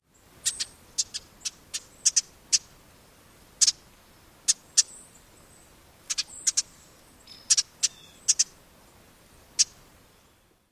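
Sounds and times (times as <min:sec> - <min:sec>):
jit and jidit calls: 0:00.4 - 0:02.7, 0:03.6 - 0:03.8, 0:04.5 - 0:05.1, 0:06.1 - 0:08.6, 0:09.6 - 0:09.8.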